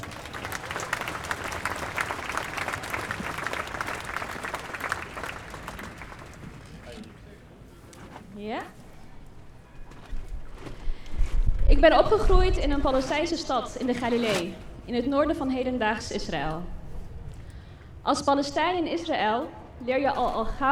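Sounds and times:
crowd applause at a Gaza demonstration: 0.0s - 7.4s
noise: 0.0s - 20.7s
speech: 11.8s - 16.8s, 18.1s - 20.7s.

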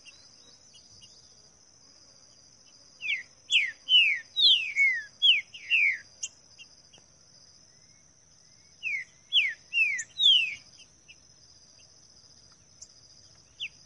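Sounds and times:
green-winged saltator singing in the bush: 3.0s - 6.4s, 8.7s - 10.9s.

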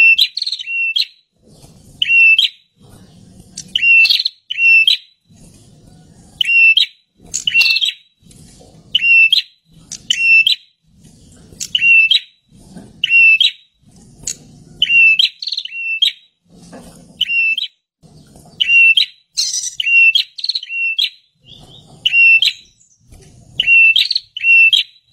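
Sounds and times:
bird calling with short whistled notes: 0.0s - 1.3s, 2.0s - 2.6s, 3.7s - 5.2s, 6.4s - 8.1s, 8.9s - 10.7s, 11.6s - 12.4s, 13.0s - 13.7s, 14.8s - 16.3s, 17.2s - 23.0s, 23.6s - 25.1s.

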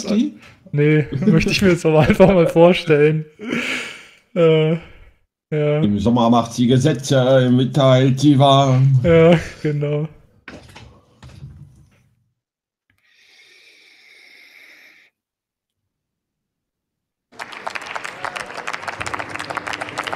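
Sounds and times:
speech: 0.0s - 3.7s, 4.4s - 4.9s, 5.5s - 10.6s
applause in parliament: 17.3s - 20.1s.

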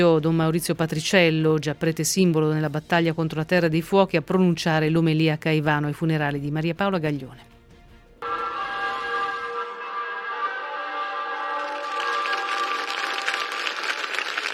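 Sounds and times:
speech: 0.0s - 7.5s
church bell ringing: 8.2s - 13.5s
long applause: 11.2s - 14.5s.

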